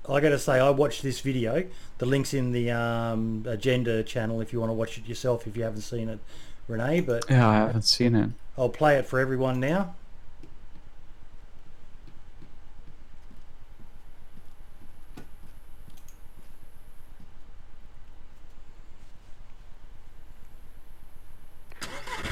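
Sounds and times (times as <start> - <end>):
speech: 0.1 - 10.0
helicopter engine starting up: 21.7 - 22.3.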